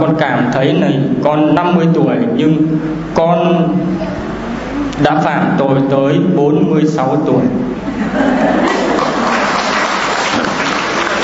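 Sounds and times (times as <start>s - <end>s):
speech: 0.0s - 4.1s, 5.0s - 8.8s
laughter: 7.8s - 11.2s
church congregation applauding a testimony: 8.6s - 11.2s.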